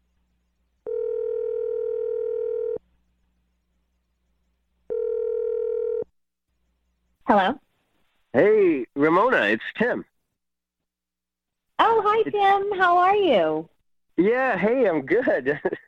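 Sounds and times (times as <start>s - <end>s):
telephone dial tone: 0.9s - 2.8s, 4.9s - 6.0s
speech: 8.4s - 10.1s, 11.9s - 15.8s.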